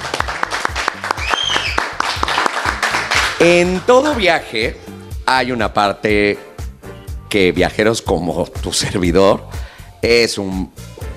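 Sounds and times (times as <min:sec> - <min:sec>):
audience applause: 0:00.0 - 0:03.4
speech: 0:03.4 - 0:06.5, 0:07.3 - 0:10.9.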